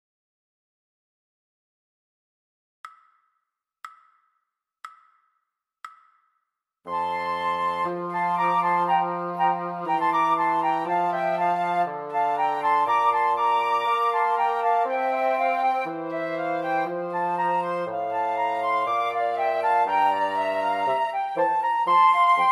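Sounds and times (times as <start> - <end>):
fast recorder trio: 6.9 - 22.4.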